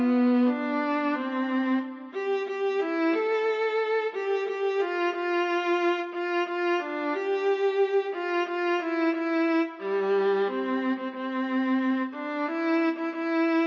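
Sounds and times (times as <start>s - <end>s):
solo viola: 0.0s - 13.6s.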